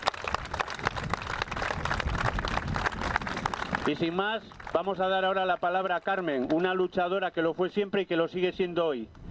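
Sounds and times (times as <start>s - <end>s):
audience applause: 0.0s - 5.0s
speech: 3.9s - 9.2s.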